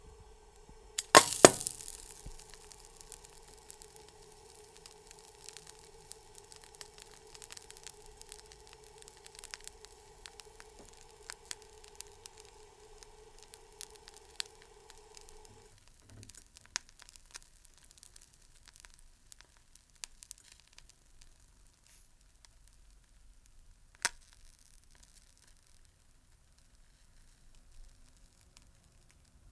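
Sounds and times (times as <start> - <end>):
egg sizzling in frying pan: 0.0 - 29.4.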